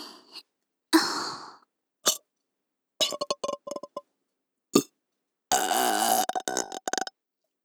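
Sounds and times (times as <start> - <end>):
person burping for ASMR: 0.9 - 2.2, 3.0 - 4.0, 5.5 - 7.0.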